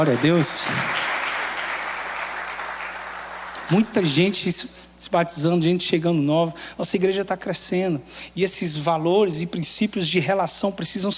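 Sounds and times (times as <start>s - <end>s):
speech: 0.0s - 1.1s, 3.7s - 11.1s
audience applause: 0.0s - 4.0s.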